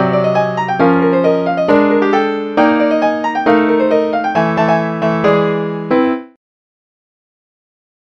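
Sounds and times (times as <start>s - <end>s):
classical music: 0.0s - 6.4s.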